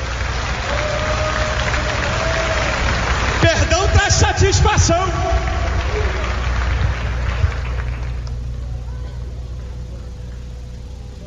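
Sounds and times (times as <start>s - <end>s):
audience applauding: 0.0s - 8.6s
speech: 3.5s - 5.5s.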